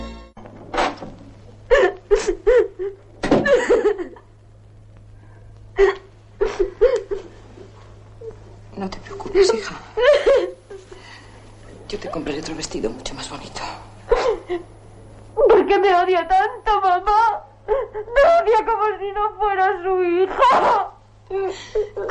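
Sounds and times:
faint low hum: 0.3s - 22.0s
woman crying inconsolably on her bed: 1.7s - 4.2s, 5.8s - 7.3s, 10.0s - 10.8s, 14.1s - 14.7s, 16.7s - 22.0s.

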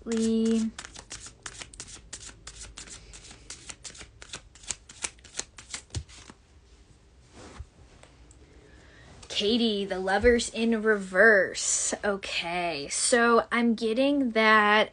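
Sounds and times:
tarot cards shuffled for a card pull: 0.0s - 6.4s
speech: 0.1s - 0.8s, 9.4s - 14.9s.

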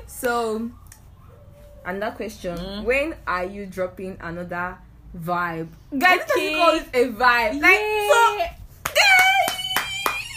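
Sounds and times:
speech: 0.2s - 0.8s, 1.8s - 8.6s
hands clapping: 8.8s - 10.3s.

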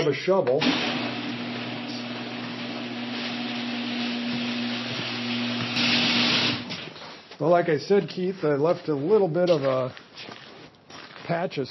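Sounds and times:
speech: 0.1s - 1.1s, 7.4s - 10.4s, 11.3s - 11.6s
garage door opener motor running: 0.6s - 6.9s.

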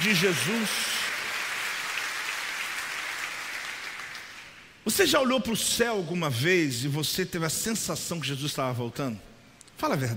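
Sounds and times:
speech: 0.0s - 1.0s, 4.8s - 10.1s
audience applause: 0.0s - 4.6s.

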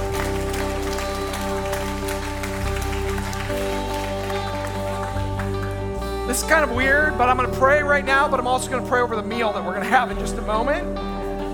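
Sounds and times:
audience applause: 0.0s - 6.5s
sustained keyboard chords: 0.0s - 11.5s
speech: 6.4s - 11.0s.

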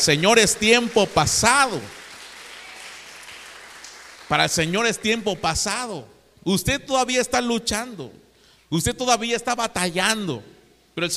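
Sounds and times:
speech: 0.0s - 2.0s, 4.3s - 11.1s
crowd clapping: 0.0s - 5.4s.

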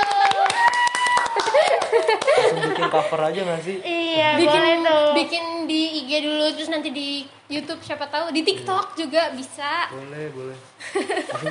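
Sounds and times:
hand clapping: 0.0s - 2.4s
laughter: 1.3s - 3.4s, 10.8s - 11.5s
speech: 2.1s - 11.5s.

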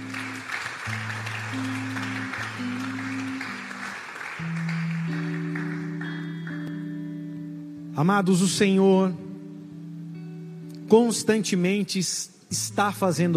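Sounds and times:
audience clapping: 0.0s - 7.3s
speech: 8.0s - 9.2s, 10.9s - 13.3s.

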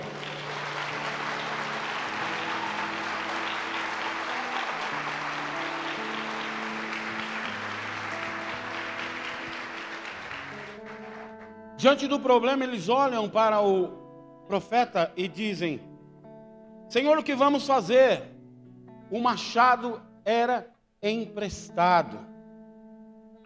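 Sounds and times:
crowd applauding: 0.0s - 11.5s
speech: 11.8s - 15.9s, 16.9s - 18.3s, 19.1s - 22.3s.

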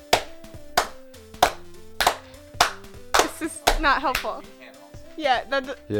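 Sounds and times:
hand claps for audio sync: 0.0s - 4.6s
speech: 3.8s - 4.6s, 5.2s - 5.9s.

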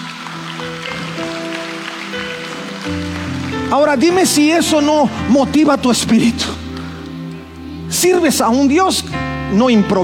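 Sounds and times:
audience applause: 0.0s - 4.8s
speech: 3.7s - 6.6s, 7.9s - 10.0s.

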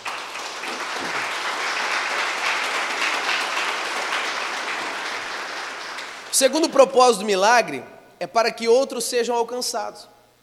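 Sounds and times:
audience applauding loudly: 0.0s - 6.8s
speech: 6.4s - 10.1s.

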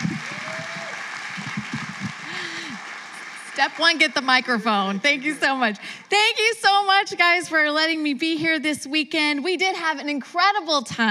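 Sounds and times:
audience clapping welcoming a speaker: 0.0s - 6.4s
people cheering: 0.0s - 6.8s
speech: 3.6s - 11.0s.

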